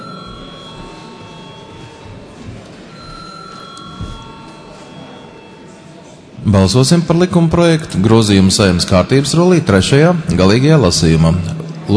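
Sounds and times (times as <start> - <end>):
parliament chamber bell before voting: 0.0 - 7.7
speech: 6.5 - 11.9.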